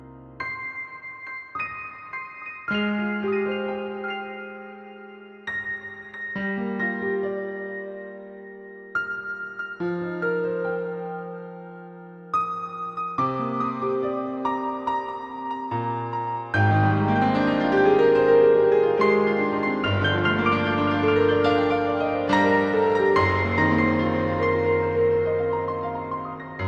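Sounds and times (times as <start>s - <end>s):
light piano: 0.0s - 26.6s.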